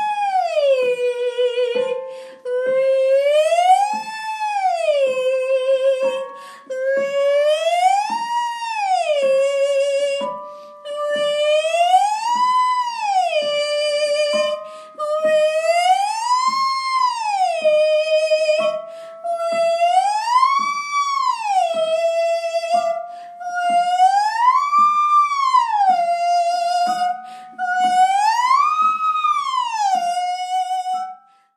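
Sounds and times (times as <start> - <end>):
person singing vocal warm-up on wee ee: 0.0 - 31.2.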